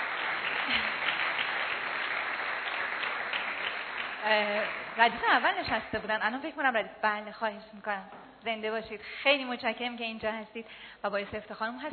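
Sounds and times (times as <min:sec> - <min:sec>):
audience applause: 0:00.0 - 0:05.5
speech: 0:04.2 - 0:11.9.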